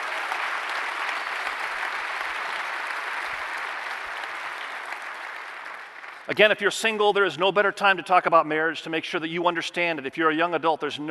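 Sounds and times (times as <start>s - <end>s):
audience applauding married couples: 0.0s - 6.4s
speech: 6.3s - 11.1s.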